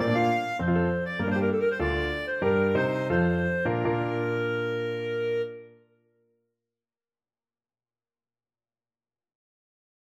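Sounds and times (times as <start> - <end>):
clarinet playing a classical fantasy: 0.0 - 5.9.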